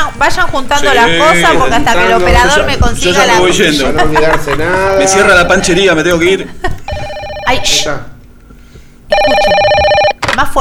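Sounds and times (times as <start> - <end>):
speech: 0.2 - 6.7, 7.5 - 8.1, 10.4 - 10.6
laughter: 3.4 - 7.1
telephone ring tone on outgoing call: 6.9 - 8.0, 9.1 - 10.2.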